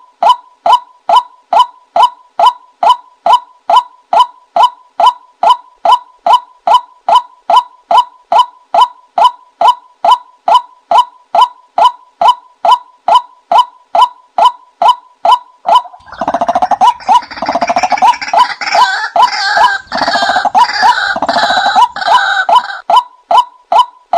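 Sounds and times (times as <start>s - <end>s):
white-breasted waterhen hollow calls: 0.2s - 24.1s.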